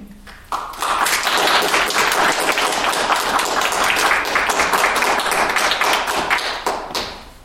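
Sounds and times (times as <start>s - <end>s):
audience applause welcoming four panel speakers: 0.3s - 7.3s.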